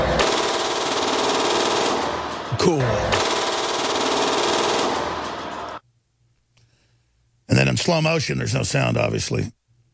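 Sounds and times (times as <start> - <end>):
rapid gunfire: 0.2 - 2.4, 3.1 - 5.8
speech: 2.7 - 3.1, 7.9 - 9.6.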